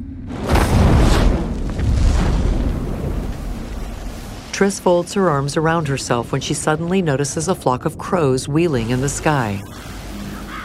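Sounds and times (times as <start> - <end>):
explosion: 0.0 - 4.5
patch of earth bursting into flames: 0.2 - 4.6
speech: 4.6 - 9.9.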